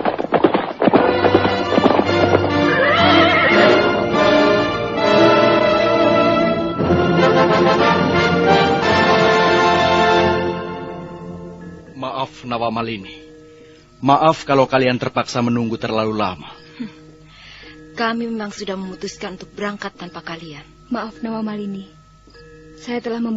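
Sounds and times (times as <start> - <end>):
two horses galloping: 0.0 - 11.0
speech: 12.5 - 13.3, 14.0 - 17.0, 18.0 - 23.3.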